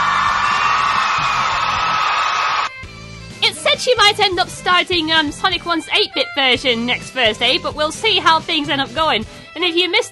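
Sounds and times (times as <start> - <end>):
applause: 0.0 - 2.7
cheering: 0.0 - 2.7
speech: 3.8 - 10.0.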